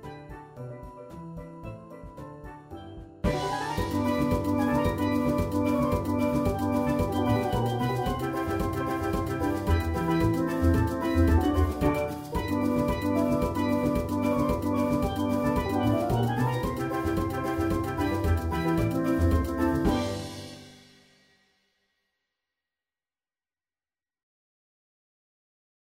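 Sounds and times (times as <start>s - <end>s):
steel drums playing a Christmas tune: 2.8s - 20.9s.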